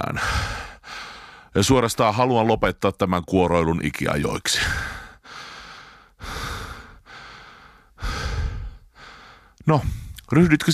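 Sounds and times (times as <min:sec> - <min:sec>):
speech: 0:00.0 - 0:00.4, 0:01.5 - 0:04.9, 0:09.6 - 0:10.7
slow deep breathing: 0:00.2 - 0:01.5, 0:04.8 - 0:10.3.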